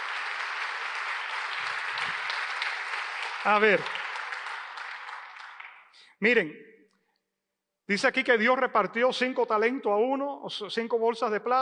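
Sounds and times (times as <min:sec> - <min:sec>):
audience applause: 0:00.0 - 0:05.9
speech: 0:03.4 - 0:04.0, 0:06.2 - 0:06.7, 0:07.9 - 0:11.5.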